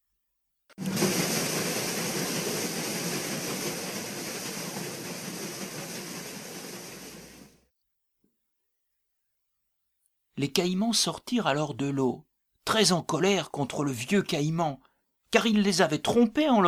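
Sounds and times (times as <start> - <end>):
paddle steamer passing on a river: 0.8 - 7.6
speech: 10.4 - 16.6.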